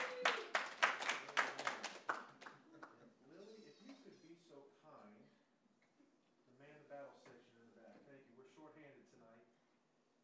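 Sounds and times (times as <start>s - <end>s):
audience applause: 0.0s - 2.9s.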